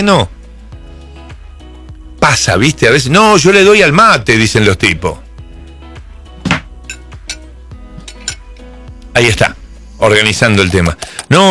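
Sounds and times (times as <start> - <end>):
speech: 0.0 - 0.4, 2.2 - 5.2, 9.2 - 11.5
spoon clinking against a cup while beating coffee by hand: 6.8 - 8.6.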